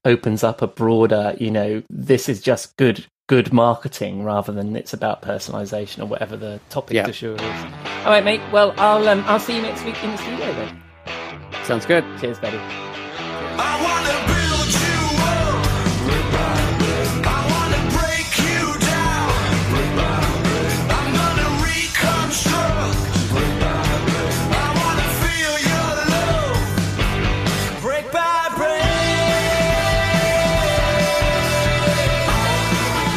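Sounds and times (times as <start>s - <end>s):
speech: 0.0s - 12.9s
rock song: 7.4s - 33.1s.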